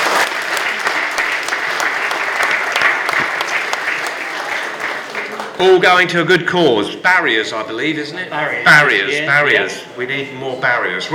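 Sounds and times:
audience applause after auction sale: 0.0 - 5.8
speech: 5.6 - 11.1.

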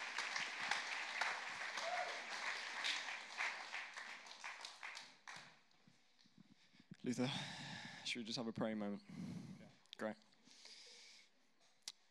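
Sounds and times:
church audience applause: 0.0 - 5.6
speech: 7.0 - 10.2.

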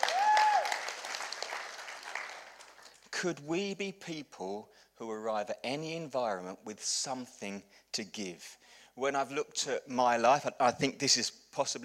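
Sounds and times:
round of applause: 0.0 - 3.1
speech: 3.2 - 11.8.

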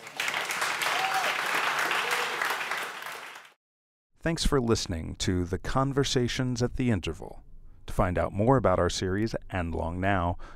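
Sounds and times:
audience applause: 0.0 - 3.6
speech: 4.2 - 10.5.

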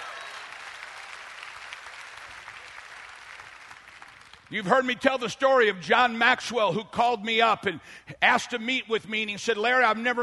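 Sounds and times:
audience clapping: 0.0 - 4.7
speech: 4.5 - 10.2.

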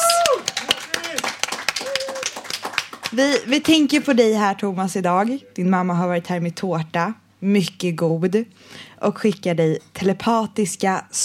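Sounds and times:
people clapping: 0.0 - 4.0
speech: 3.1 - 11.2.

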